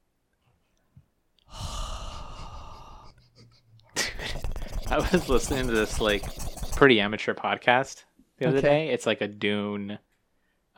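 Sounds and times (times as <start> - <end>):
sniffing through the nose: 1.6 - 6.8
speech: 4.9 - 10.1.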